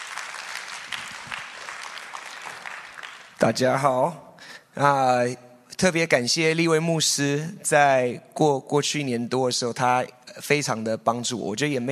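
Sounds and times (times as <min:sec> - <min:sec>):
audience applause welcoming a speaker: 0:00.0 - 0:03.5
speech: 0:03.4 - 0:04.2, 0:04.8 - 0:11.9.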